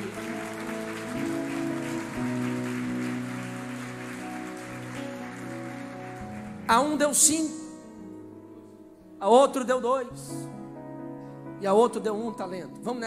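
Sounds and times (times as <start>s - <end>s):
audience applauding loudly: 0.0s - 7.3s
speech: 6.7s - 7.6s, 9.2s - 10.6s, 11.6s - 13.0s.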